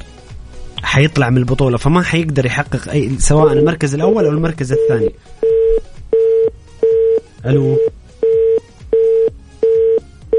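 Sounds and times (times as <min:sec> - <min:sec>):
speech: 0:00.9 - 0:05.9, 0:07.4 - 0:07.9
telephone busy tone after a line cuts off: 0:03.4 - 0:03.7, 0:04.8 - 0:10.3.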